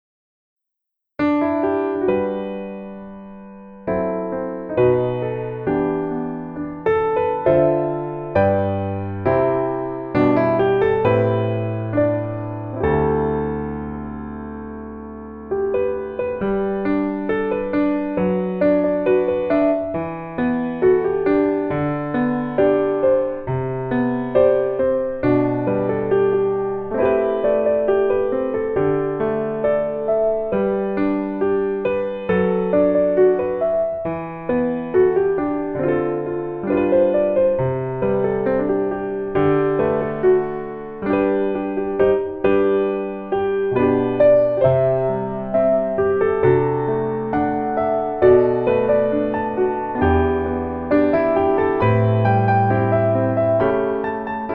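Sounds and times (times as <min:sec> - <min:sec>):
piano melody in female key: 0:01.2 - 0:54.5.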